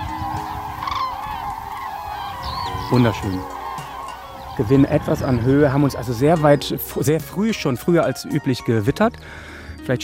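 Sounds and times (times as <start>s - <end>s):
common cranes trumpeting: 0.0s - 7.3s
speech: 2.9s - 3.6s, 4.6s - 10.0s.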